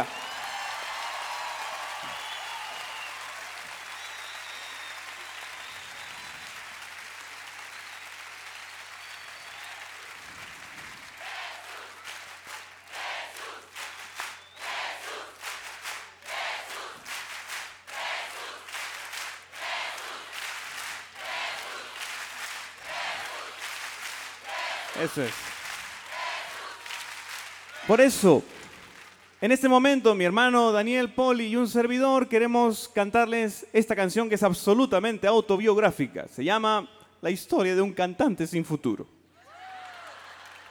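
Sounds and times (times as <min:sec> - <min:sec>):
audience cheers and shouts: 0:00.0 - 0:06.7, 0:08.5 - 0:15.5, 0:16.2 - 0:17.1, 0:17.9 - 0:18.9, 0:21.1 - 0:22.2, 0:24.4 - 0:25.4, 0:26.0 - 0:28.2, 0:39.4 - 0:40.7
audience applauding: 0:00.0 - 0:29.8, 0:39.4 - 0:40.7
speech: 0:25.0 - 0:25.4, 0:27.9 - 0:28.5, 0:29.4 - 0:39.1.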